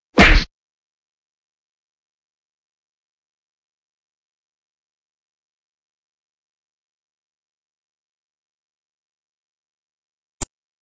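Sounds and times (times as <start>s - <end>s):
fight sounds: 0.1s - 0.5s.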